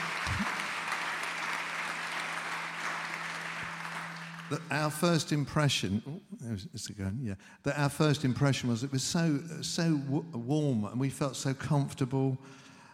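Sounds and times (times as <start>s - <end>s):
audience clapping at a welcome gathering: 0.0s - 5.4s
speech: 4.5s - 12.7s.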